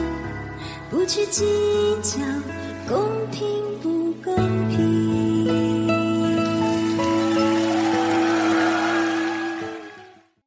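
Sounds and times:
speech: 0:00.9 - 0:05.6
sustained music notes: 0:06.0 - 0:10.2
applause: 0:06.6 - 0:10.3.

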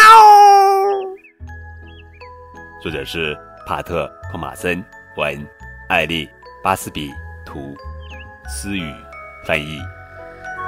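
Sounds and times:
cat meowing: 0:00.0 - 0:01.2
speech: 0:02.8 - 0:07.9, 0:08.5 - 0:10.0.

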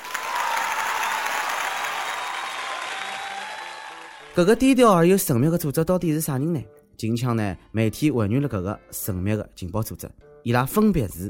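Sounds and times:
thunderous applause: 0:00.0 - 0:04.4
speech: 0:04.4 - 0:11.2.

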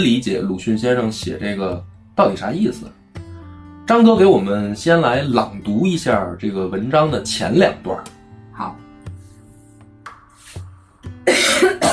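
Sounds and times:
speech: 0:00.0 - 0:03.0, 0:03.9 - 0:08.8
person coughing uncontrollably: 0:11.2 - 0:11.9.

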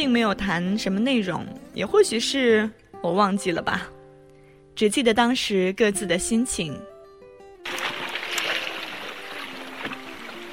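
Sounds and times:
speech: 0:00.0 - 0:04.0, 0:04.8 - 0:06.9
lake water lapping at night: 0:07.7 - 0:10.5.

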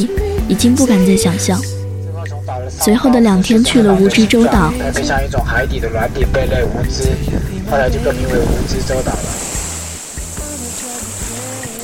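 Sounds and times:
speech: 0:00.0 - 0:01.8, 0:02.7 - 0:09.4
sea waves breaking on the shore: 0:03.4 - 0:11.8.

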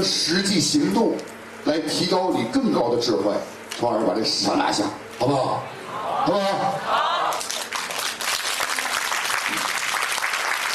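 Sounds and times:
speech: 0:00.0 - 0:07.2
crowd applauding: 0:07.2 - 0:10.7.

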